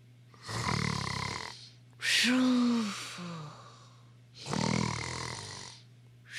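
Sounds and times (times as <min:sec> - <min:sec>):
piglet in a tent snoring: 0:00.3 - 0:01.8, 0:04.4 - 0:05.9
speech: 0:02.2 - 0:03.0.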